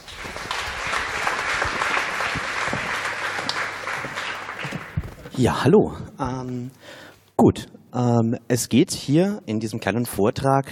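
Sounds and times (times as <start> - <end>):
audience applause: 0.0 - 5.3
speech: 5.4 - 6.8, 7.4 - 10.7.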